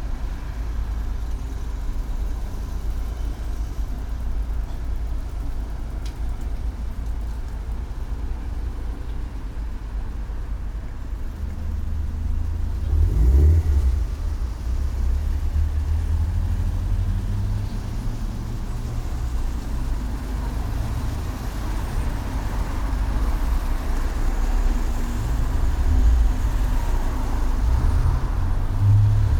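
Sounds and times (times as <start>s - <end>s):
intersection traffic: 0.0s - 29.3s.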